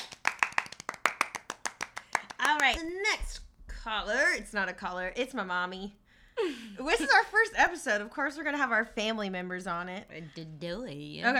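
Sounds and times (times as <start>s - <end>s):
clapping: 0.0s - 2.8s
speech: 2.6s - 11.3s.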